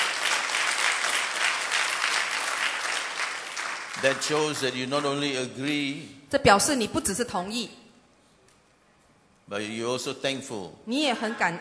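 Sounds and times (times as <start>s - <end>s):
audience applauding: 0.0s - 5.4s
speech: 4.0s - 7.8s, 9.5s - 11.5s.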